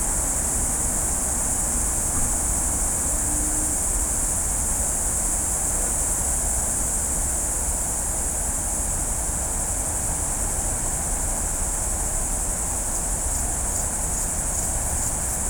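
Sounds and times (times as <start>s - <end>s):
cicada song at night: 0.0s - 15.4s.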